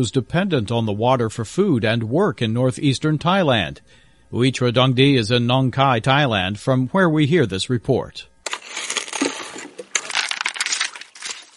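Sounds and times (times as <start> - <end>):
speech: 0.0 - 8.3
panning for gold in river gravel: 8.4 - 11.5.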